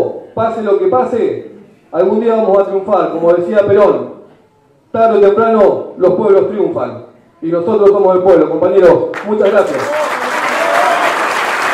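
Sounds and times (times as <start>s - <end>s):
speech: 0.4s - 4.2s, 4.9s - 10.1s
audience applause after a speech: 9.2s - 11.7s.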